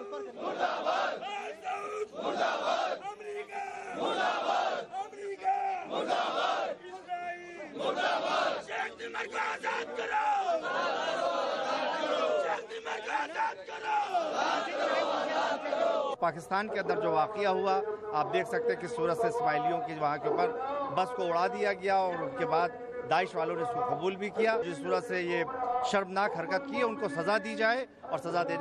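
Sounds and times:
protest crowd chanting slogans against America, Israel and Al Saud: 0:00.0 - 0:16.2
speech: 0:16.2 - 0:28.6.

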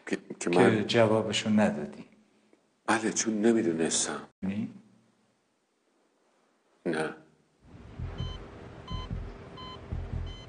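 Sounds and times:
speech: 0:00.1 - 0:02.1, 0:02.9 - 0:04.8
monitoring device beeping with changing heartbeat: 0:08.0 - 0:10.4.

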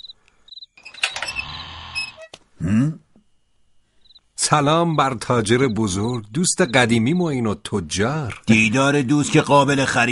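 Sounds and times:
door creaking open at night: 0:00.8 - 0:02.4
speech: 0:02.6 - 0:03.0, 0:04.5 - 0:10.1.

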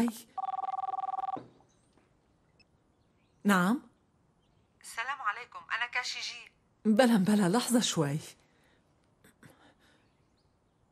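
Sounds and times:
speech: 0:00.0 - 0:00.3, 0:03.4 - 0:03.9, 0:04.8 - 0:08.4
telephone bell ringing in a house: 0:00.4 - 0:01.4.

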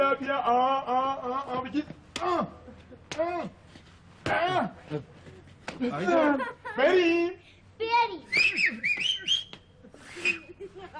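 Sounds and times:
speech: 0:00.1 - 0:02.6, 0:04.3 - 0:05.2, 0:05.8 - 0:08.9
laughter: 0:05.7 - 0:07.1, 0:09.9 - 0:10.9
person whistling: 0:08.3 - 0:10.6.

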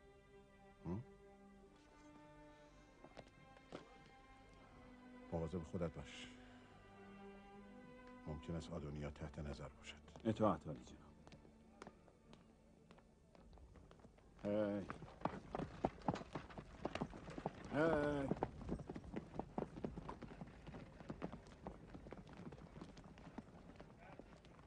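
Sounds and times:
speech: 0:05.4 - 0:06.4, 0:08.3 - 0:11.1, 0:14.5 - 0:15.1, 0:17.8 - 0:18.4
horse hooves clip-clopping: 0:11.2 - 0:24.6.

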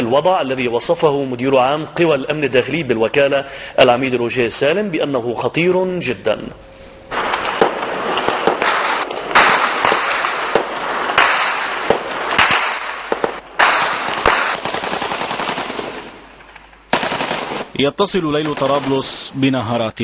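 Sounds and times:
speech: 0:00.1 - 0:06.7, 0:17.8 - 0:20.0
single gunshots: 0:07.1 - 0:16.2, 0:16.9 - 0:17.8, 0:18.4 - 0:19.2
automatic gunfire in street fighting: 0:07.2 - 0:16.2, 0:16.9 - 0:17.7.

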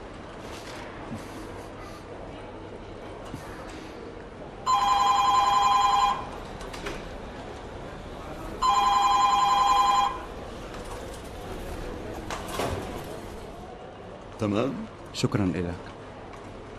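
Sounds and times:
faint noise: 0:00.0 - 0:16.7
telephone ringing during a phone call: 0:04.7 - 0:06.4, 0:08.6 - 0:10.4
speech: 0:14.4 - 0:15.9.

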